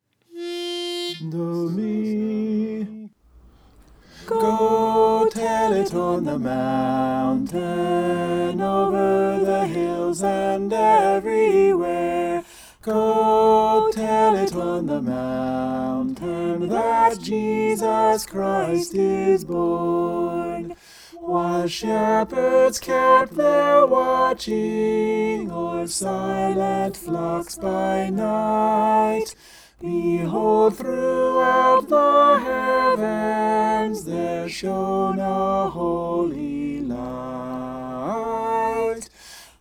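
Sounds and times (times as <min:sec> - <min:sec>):
soprano singing: 0:00.3 - 0:02.7, 0:04.1 - 0:39.1.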